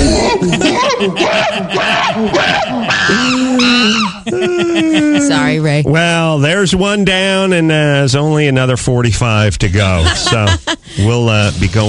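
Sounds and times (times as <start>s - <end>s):
laughter: 0.0s - 5.7s, 9.8s - 11.4s
monkey sound effect: 1.8s - 5.5s
speech: 5.8s - 11.8s.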